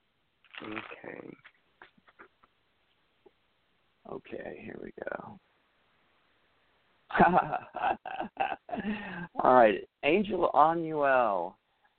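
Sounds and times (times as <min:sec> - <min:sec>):
deck of cards shuffling: 0:00.5 - 0:02.5
speech: 0:00.6 - 0:01.6, 0:04.1 - 0:05.5, 0:07.2 - 0:11.6
laughter: 0:07.1 - 0:09.3.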